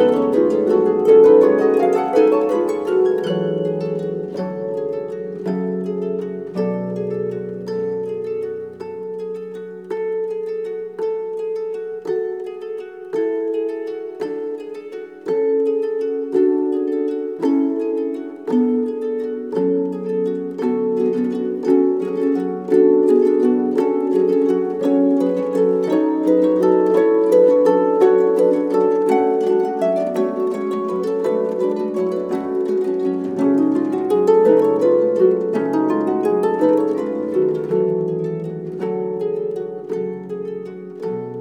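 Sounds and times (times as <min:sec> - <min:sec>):
harp ensemble: 0:00.0 - 0:41.4.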